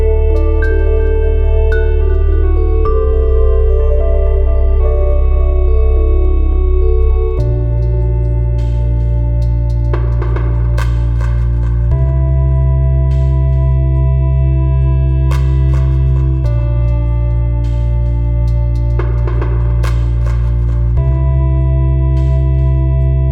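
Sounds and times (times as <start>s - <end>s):
autumn ambient music jam: 0.0s - 23.2s.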